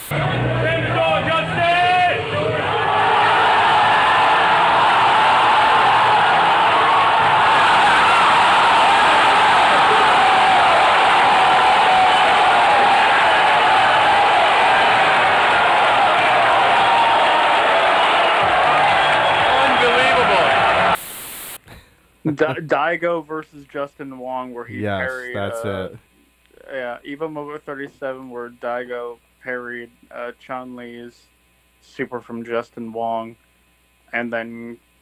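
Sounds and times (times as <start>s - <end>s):
crowd cheering wildly at a fighting game tournament: 0.0s - 21.0s
speech: 22.4s - 26.1s, 26.9s - 33.4s, 34.1s - 34.8s.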